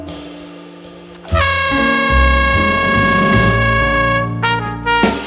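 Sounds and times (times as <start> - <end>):
quartet playing: 1.1 - 5.1.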